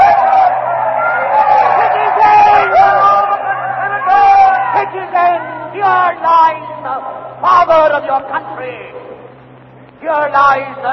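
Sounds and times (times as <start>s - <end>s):
frenzied crowd shouting: 0.0s - 7.5s
speech: 10.1s - 10.9s.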